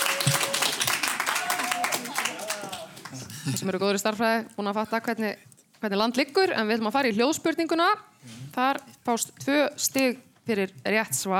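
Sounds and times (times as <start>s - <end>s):
applause at a school music quiz competition: 0.0s - 3.3s
speech: 3.5s - 11.3s.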